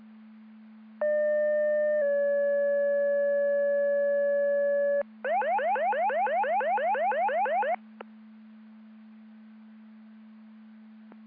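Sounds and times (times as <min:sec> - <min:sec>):
siren: 0:01.1 - 0:07.8.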